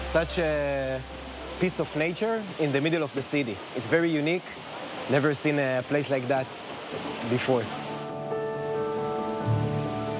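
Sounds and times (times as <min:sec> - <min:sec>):
waterfall on Hongjaecheon Stream flowing down from Inwangsan Mountain: 0:00.0 - 0:10.1
speech: 0:00.1 - 0:07.8.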